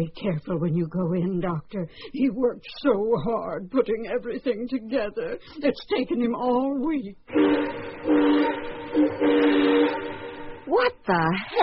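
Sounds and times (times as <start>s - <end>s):
speech: 0.0s - 10.1s, 10.7s - 11.6s
model railroad train whistle tooting: 7.3s - 10.8s
steady hiss: 7.3s - 10.8s.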